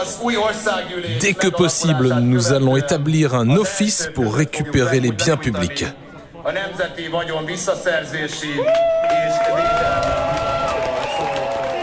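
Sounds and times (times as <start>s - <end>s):
speech: 0.0s - 10.1s
crowd cheering and shouting: 8.5s - 11.8s.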